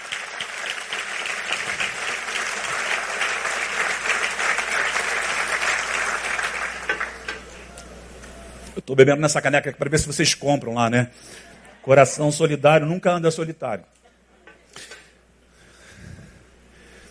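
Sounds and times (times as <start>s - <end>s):
audience applause: 0.0s - 7.6s
speech: 8.8s - 14.0s.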